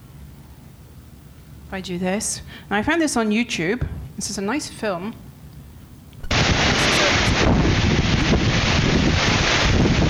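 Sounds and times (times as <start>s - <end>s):
speech: 1.7s - 5.2s
strong storm wind buffeting the microphone: 6.2s - 10.0s.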